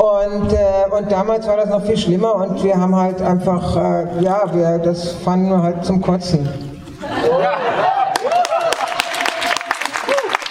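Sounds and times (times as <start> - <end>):
speech: 0.0 - 8.0
voices and laughter: 7.0 - 8.2
audience clapping: 7.9 - 10.4.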